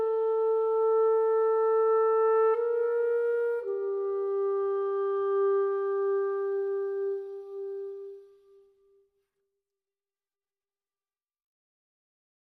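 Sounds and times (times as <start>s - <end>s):
solo clarinet: 0.0s - 9.2s.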